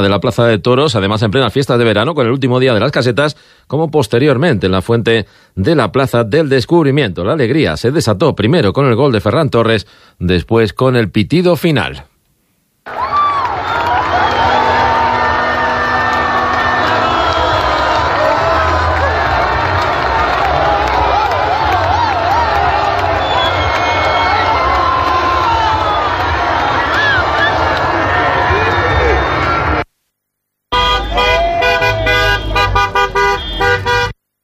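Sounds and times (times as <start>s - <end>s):
speech: 0.0s - 12.1s, 12.8s - 13.2s
crowd cheering in celebration in Ávila: 12.9s - 29.9s, 30.7s - 33.9s.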